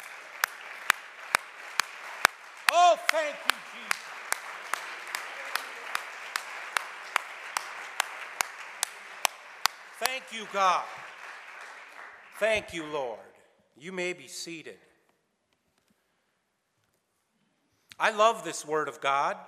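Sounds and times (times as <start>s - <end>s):
audience clapping hands in praise: 0.0s - 13.2s
speech: 2.9s - 3.9s, 10.2s - 11.0s, 12.4s - 14.9s, 18.0s - 19.4s.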